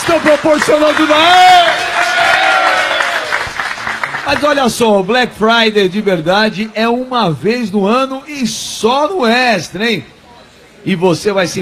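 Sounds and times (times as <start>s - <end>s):
crowd applause for the Extra supermarket at a Black Friday promotion: 0.0s - 4.7s
speech: 0.1s - 1.8s, 4.3s - 10.2s, 10.8s - 11.6s.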